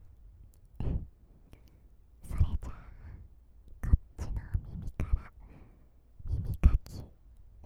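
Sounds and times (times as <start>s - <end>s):
older sister's sweet breathing in the right ear: 0.8s - 3.4s, 5.1s - 7.2s.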